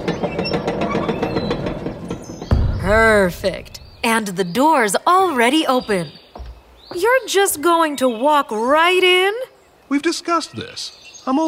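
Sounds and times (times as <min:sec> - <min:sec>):
drawbridge being lowered: 0:00.0 - 0:04.4
speech: 0:02.9 - 0:06.2, 0:06.9 - 0:11.4.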